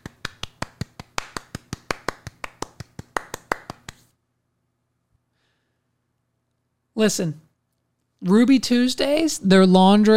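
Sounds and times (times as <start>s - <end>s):
audience clapping in unison: 0.0s - 4.1s
speech: 7.0s - 7.4s, 8.2s - 10.1s.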